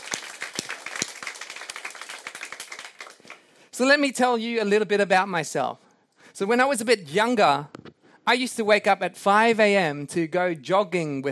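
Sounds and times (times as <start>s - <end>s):
crowd applauding: 0.0s - 3.6s
speech: 3.8s - 5.8s, 6.4s - 11.3s.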